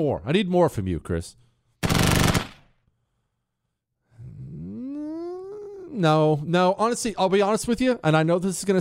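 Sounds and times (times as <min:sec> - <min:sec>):
speech: 0:00.0 - 0:02.2, 0:05.9 - 0:08.7
distant machine gun fire: 0:01.8 - 0:02.7.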